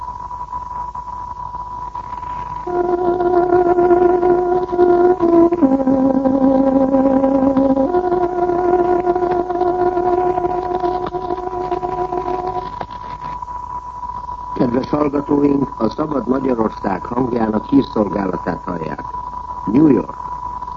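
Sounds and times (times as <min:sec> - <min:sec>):
hiss: 0:00.0 - 0:20.7
tárogató interval-signal melody: 0:02.6 - 0:12.8
speech: 0:15.1 - 0:20.2.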